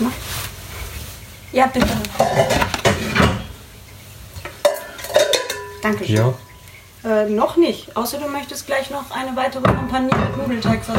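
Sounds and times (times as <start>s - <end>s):
speech: 1.5s - 2.6s, 5.9s - 10.9s
bowl being taken out of a kitchen cupboard: 1.8s - 3.6s, 4.4s - 6.7s, 9.6s - 10.9s.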